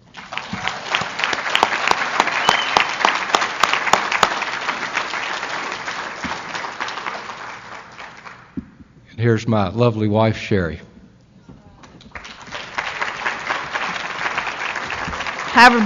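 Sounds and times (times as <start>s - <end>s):
audience applause: 0.0s - 8.5s, 12.0s - 15.8s
speech: 9.2s - 10.9s, 15.6s - 15.8s.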